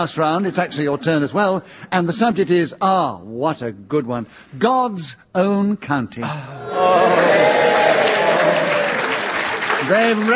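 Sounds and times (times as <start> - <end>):
speech: 0.0 - 7.7, 9.8 - 10.3
audience applause: 6.7 - 10.3.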